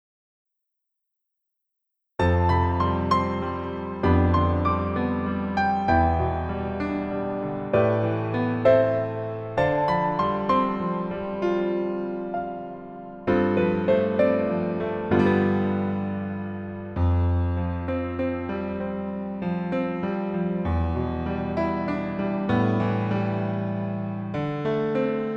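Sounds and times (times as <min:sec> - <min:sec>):
piano music: 0:02.2 - 0:25.3.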